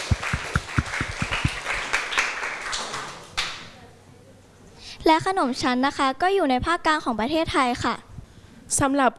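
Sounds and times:
audience applause: 0:00.0 - 0:03.5
speech: 0:05.1 - 0:08.1, 0:08.7 - 0:09.1.

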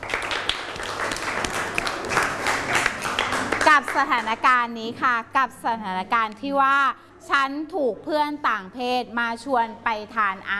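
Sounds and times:
students clapping for a classmate: 0:00.0 - 0:04.3
speech: 0:04.0 - 0:10.5.

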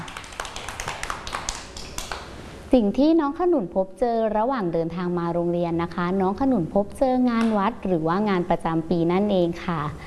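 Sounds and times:
children clapping during a school lesson: 0:00.0 - 0:02.3
speech: 0:02.7 - 0:10.0.

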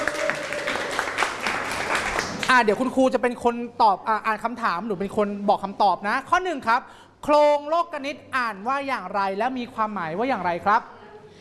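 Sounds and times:
students clapping: 0:00.0 - 0:02.8
speech: 0:02.5 - 0:11.0.

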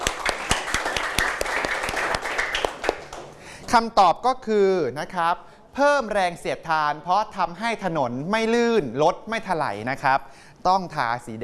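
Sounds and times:
classroom applause: 0:00.0 - 0:03.4
speech: 0:03.7 - 0:11.4.

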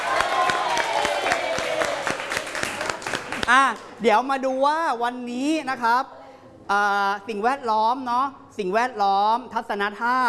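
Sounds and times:
audience applause: 0:00.0 - 0:03.6
speech: 0:03.5 - 0:10.2.

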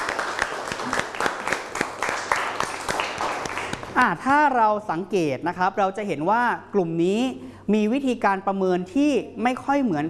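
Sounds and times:
audience applause: 0:00.0 - 0:03.9
speech: 0:04.0 - 0:10.0.

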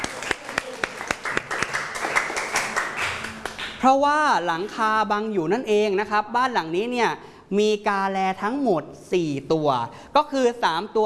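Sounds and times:
hand clapping: 0:00.0 - 0:03.8
speech: 0:03.8 - 0:11.0.

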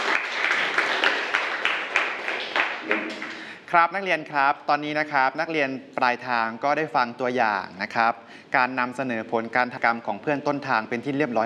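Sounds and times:
students clapping: 0:00.0 - 0:03.6
speech: 0:03.7 - 0:11.4.

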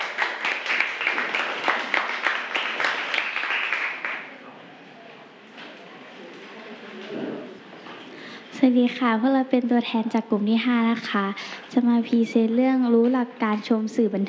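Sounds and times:
classroom applause: 0:00.0 - 0:04.4
faint murmur: 0:01.1 - 0:09.0
speech: 0:08.6 - 0:14.2.

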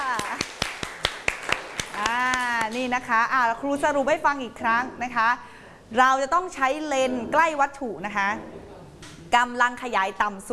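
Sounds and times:
class applause: 0:00.0 - 0:02.8
speech: 0:02.7 - 0:08.6, 0:09.3 - 0:10.5.

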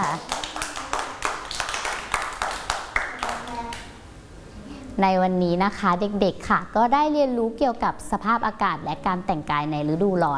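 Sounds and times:
children clapping: 0:00.0 - 0:04.0
speech: 0:05.0 - 0:10.3.

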